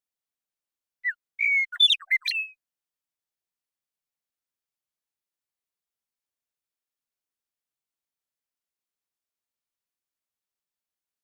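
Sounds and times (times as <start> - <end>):
Western meadowlark whistling: 1.0 - 2.6.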